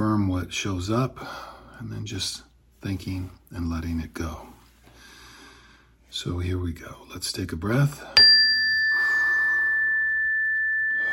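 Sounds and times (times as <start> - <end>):
speech: 0.5 - 4.5, 6.1 - 8.2
meditation chime being struck: 8.2 - 11.1.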